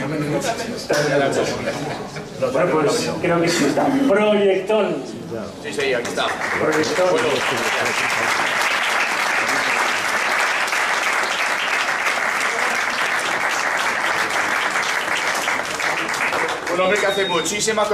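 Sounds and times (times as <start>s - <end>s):
speech: 0.3s - 8.6s, 16.8s - 17.9s
audience applause: 5.8s - 17.3s.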